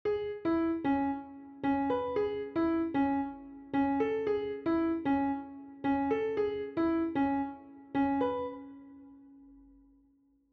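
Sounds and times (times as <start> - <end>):
melody: 0.7 - 8.8.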